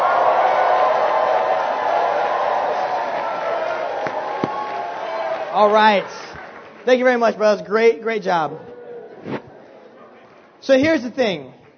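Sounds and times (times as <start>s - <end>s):
audience cheering: 0.0s - 7.4s
speech: 5.6s - 9.4s, 10.6s - 11.6s.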